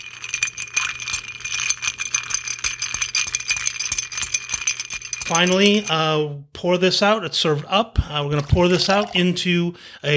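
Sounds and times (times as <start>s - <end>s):
ice stirred in cocktail mixing glass: 0.0s - 6.0s, 8.4s - 9.3s
speech: 5.3s - 10.1s.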